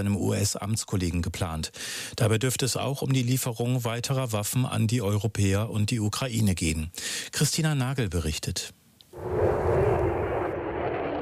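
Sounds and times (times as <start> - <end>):
speech: 0.0 - 9.4
jet roar of an F-35 Lightning II fighter in flight: 9.2 - 11.1.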